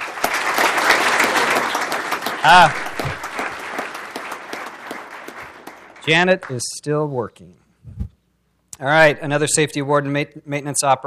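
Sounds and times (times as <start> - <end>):
round of applause: 0.0 - 6.6
speech: 2.4 - 3.2, 6.1 - 7.6, 8.8 - 11.0.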